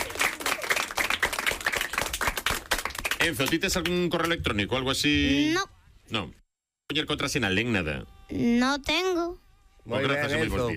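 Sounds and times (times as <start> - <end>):
audience applause: 0.0 - 3.7
speech: 3.2 - 10.7.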